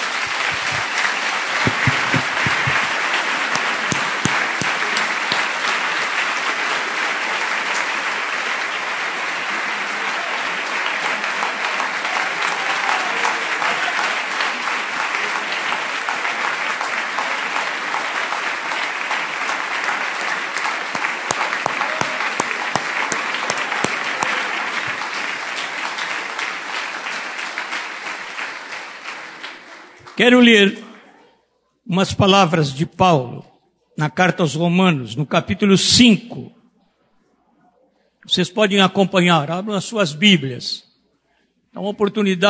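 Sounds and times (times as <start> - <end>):
audience applauding: 0.0 - 30.8
speech: 30.2 - 30.8, 31.9 - 36.6, 38.3 - 40.9, 41.7 - 42.4.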